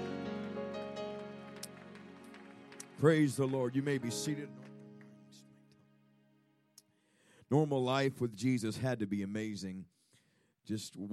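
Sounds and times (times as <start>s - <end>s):
audience clapping hands: 0.0s - 5.5s
speech: 3.0s - 4.6s, 7.5s - 10.0s, 10.6s - 11.1s.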